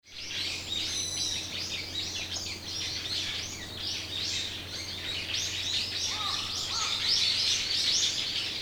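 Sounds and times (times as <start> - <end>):
birds chirping and twittering: 0.0 - 8.6.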